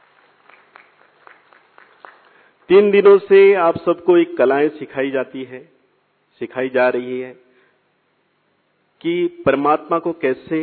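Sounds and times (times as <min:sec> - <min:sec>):
sparse handclaps welcoming artists at a Hindi-language spiritual gathering: 0:00.0 - 0:02.7
speech: 0:02.7 - 0:05.7, 0:06.4 - 0:07.4, 0:09.0 - 0:10.6.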